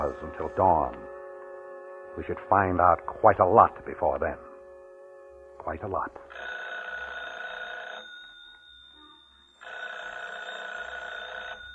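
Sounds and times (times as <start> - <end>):
speech: 0.1 - 1.1, 2.2 - 4.5, 5.6 - 6.5
telephone ringing: 6.3 - 11.7.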